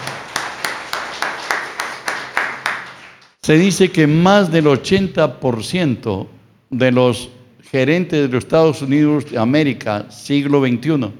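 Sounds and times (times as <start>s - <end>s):
group clapping in unison: 0.0s - 3.4s
speech: 3.4s - 11.1s.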